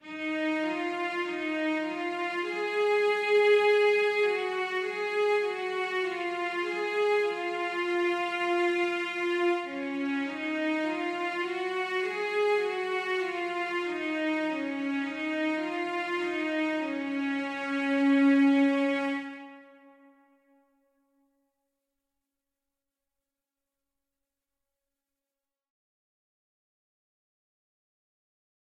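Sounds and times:
cello background music: 0.0s - 20.3s.

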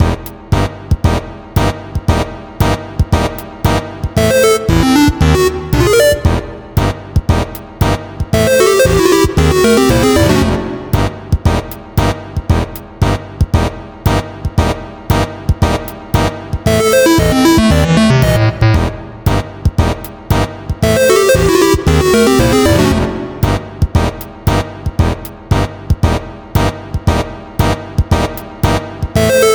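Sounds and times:
boss music in F: 0.0s - 29.5s.

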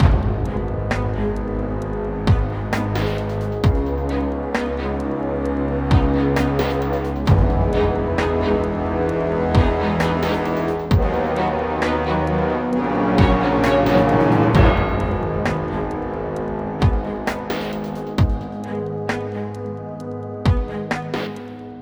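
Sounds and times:
dramatic cinematic music: 0.0s - 21.7s.

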